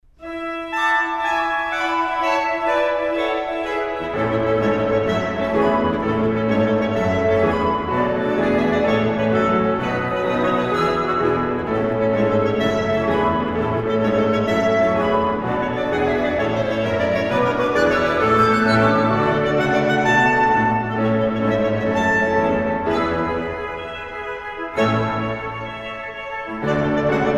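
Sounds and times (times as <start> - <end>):
festival fanfare: 0.2 - 27.3.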